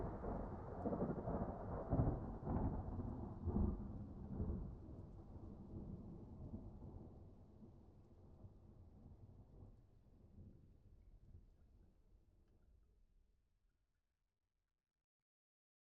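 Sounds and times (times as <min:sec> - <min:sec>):
close thunder: 0:00.0 - 0:07.3.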